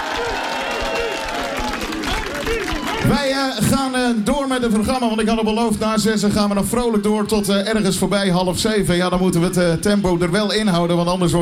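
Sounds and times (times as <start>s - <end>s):
audience applause: 0.0s - 3.6s
speech: 2.5s - 11.4s.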